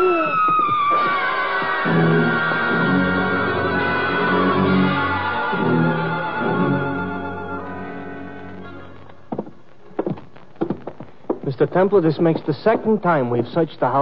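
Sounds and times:
shrill high-pitched cry: 0.0s - 7.2s
dull rhythmic thuds: 0.2s - 2.2s, 8.4s - 13.1s
speech: 11.6s - 13.9s.

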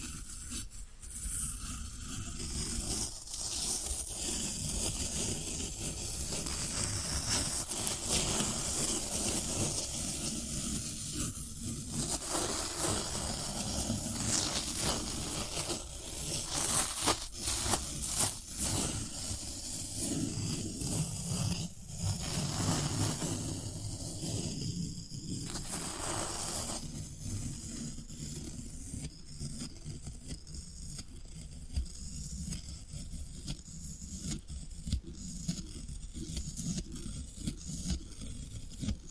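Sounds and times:
floral foam scraped and crumbled: 0.0s - 39.0s.

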